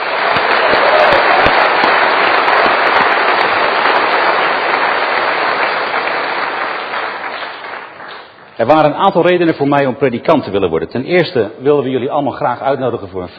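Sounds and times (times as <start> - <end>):
audience applause: 0.0 - 8.6
speech: 8.6 - 13.3.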